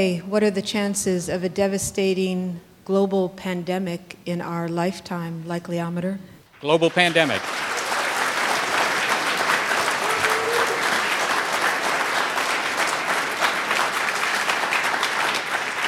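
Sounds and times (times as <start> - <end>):
speech: 0.0 - 7.7
audience clapping: 6.5 - 15.8.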